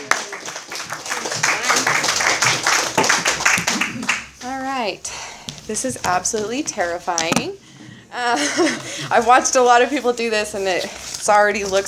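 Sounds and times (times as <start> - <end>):
audience applause welcoming a speaker to the podium: 0.0 - 4.4
speech: 4.9 - 11.8.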